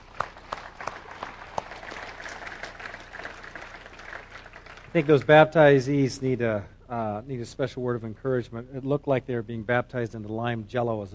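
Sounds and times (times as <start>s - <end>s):
audience applauding: 0.0s - 5.5s
speech: 4.9s - 11.1s.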